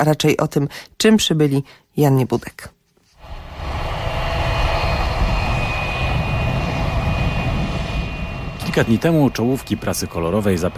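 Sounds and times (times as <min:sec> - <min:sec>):
speech: 0:00.0 - 0:02.8, 0:08.8 - 0:10.7
jet aircraft landing: 0:03.2 - 0:10.7.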